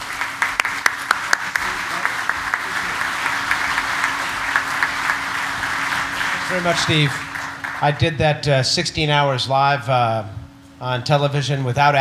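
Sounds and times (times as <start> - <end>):
Oshkosh audience applause welcoming a speaker to a pilots' gathering: 0.0 - 8.2
speech: 6.5 - 11.9.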